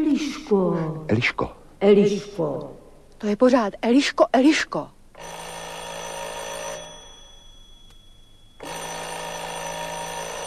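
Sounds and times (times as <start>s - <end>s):
speech: 0.0s - 5.4s
doorbell ringing: 5.2s - 10.4s.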